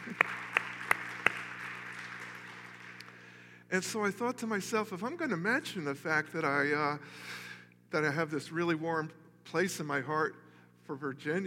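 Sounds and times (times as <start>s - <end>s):
hand claps: 0.0s - 3.3s
low hum: 0.0s - 11.4s
speech: 3.7s - 11.4s.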